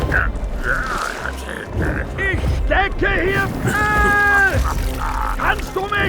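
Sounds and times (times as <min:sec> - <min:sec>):
lava golem roaring: 0:00.0 - 0:02.5, 0:03.6 - 0:05.9.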